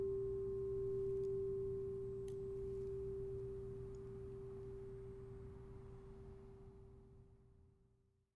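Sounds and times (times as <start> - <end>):
crystal singing bowls ringing: 0.0 - 4.8.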